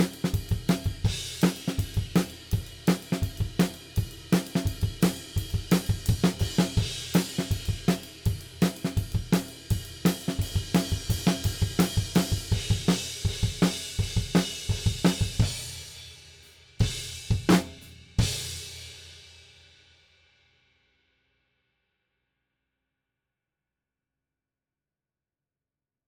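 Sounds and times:
drums: 0.0s - 20.7s.

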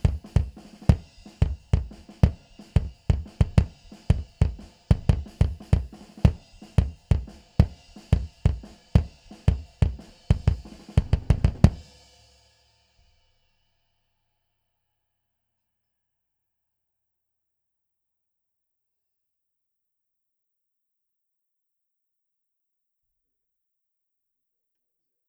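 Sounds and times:
bass drum: 0.0s - 11.9s.

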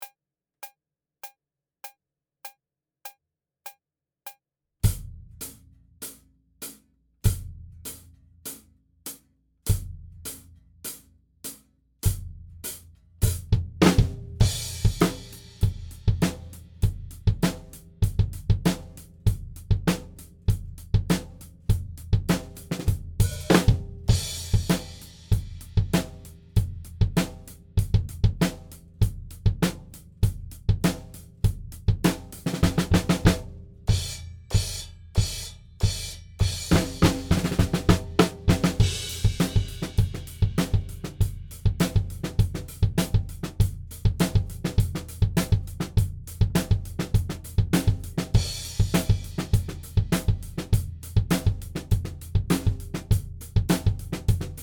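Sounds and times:
drums: 4.8s - 54.6s.

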